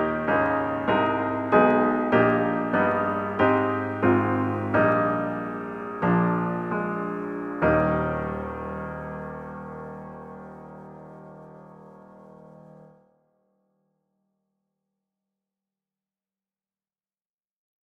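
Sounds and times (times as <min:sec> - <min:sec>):
piano music: 0:00.0 - 0:12.9.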